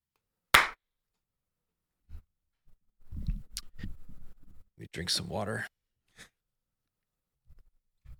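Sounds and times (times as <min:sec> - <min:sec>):
single hand clap for audio sync: 0:00.5 - 0:00.8
speech: 0:05.0 - 0:05.7.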